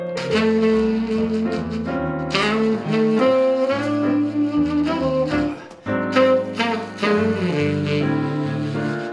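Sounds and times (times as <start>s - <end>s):
jazz trio playing: 0.1s - 9.1s.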